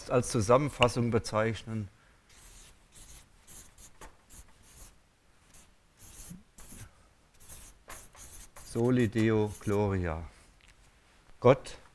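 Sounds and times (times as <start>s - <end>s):
speech: 0.1s - 2.0s, 8.7s - 10.3s, 11.4s - 11.8s
pen scratching on paper writing onto a new page: 2.3s - 9.9s.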